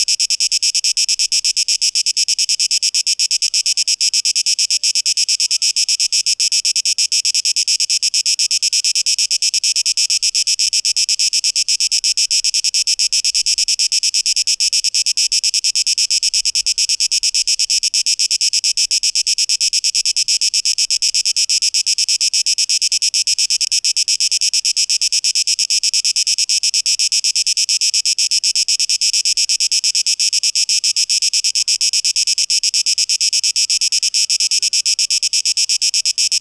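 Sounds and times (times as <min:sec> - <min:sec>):
cicada song: 0:00.0 - 0:36.4.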